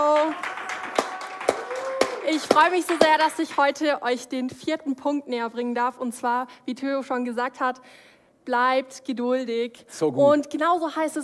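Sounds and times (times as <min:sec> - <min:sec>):
audience applause: 0:00.0 - 0:03.7
speech: 0:02.3 - 0:11.2.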